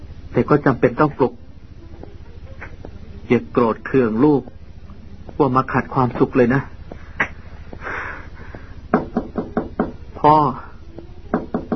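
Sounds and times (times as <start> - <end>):
speech: 0.4 - 1.4, 3.3 - 4.6, 5.3 - 6.7, 10.2 - 10.6
hollow knocks on the door of a house: 8.9 - 10.0, 11.3 - 11.7.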